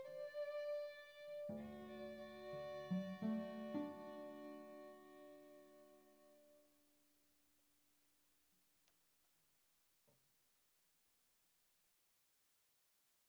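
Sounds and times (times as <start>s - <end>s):
violin sonata: 0.0s - 6.6s.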